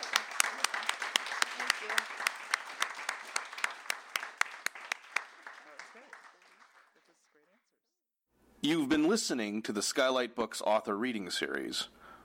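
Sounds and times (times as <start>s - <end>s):
audience round of applause: 0.0s - 7.4s
speech: 8.6s - 12.0s.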